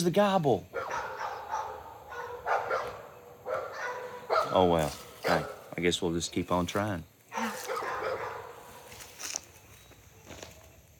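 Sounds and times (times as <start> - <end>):
speech: 0.0 - 0.8, 4.5 - 7.1
dogs barking: 0.7 - 5.7, 7.3 - 8.8.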